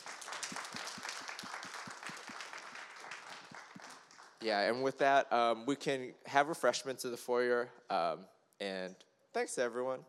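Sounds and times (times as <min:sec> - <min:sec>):
audience applause: 0:00.0 - 0:04.5
speech: 0:04.4 - 0:10.0.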